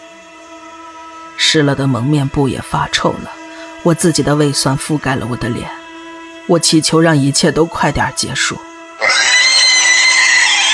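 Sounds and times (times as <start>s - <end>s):
speech: 1.4s - 5.8s, 6.5s - 9.6s
pig squealing: 9.0s - 10.7s.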